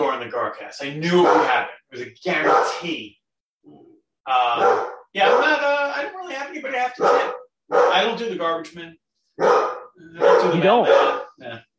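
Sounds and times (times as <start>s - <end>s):
speech: 0.2s - 11.7s
dog barking: 1.2s - 1.7s, 2.4s - 2.9s, 4.6s - 5.7s, 7.0s - 8.2s, 9.4s - 11.4s.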